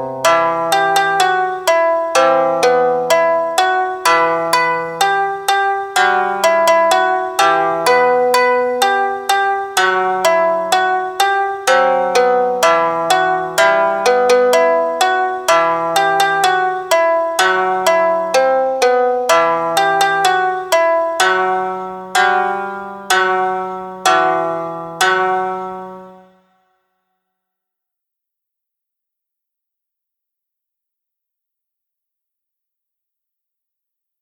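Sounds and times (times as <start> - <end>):
Japanese-style background music: 0.0 - 26.5.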